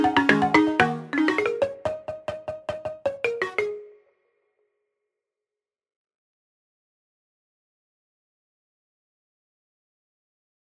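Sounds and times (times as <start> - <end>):
balafon: 0.0 - 4.1.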